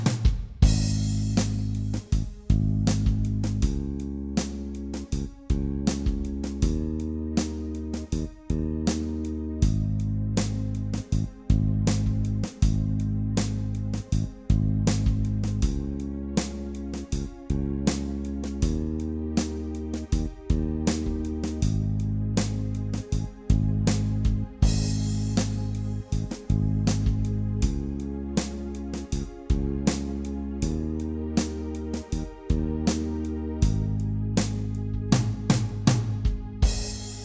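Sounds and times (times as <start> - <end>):
groove jam track in A-flat: 0.2 - 37.2.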